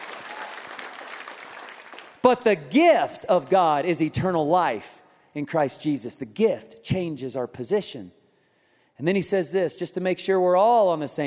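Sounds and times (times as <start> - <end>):
audience applause: 0.0 - 2.2
speech: 2.2 - 8.2, 9.0 - 11.2.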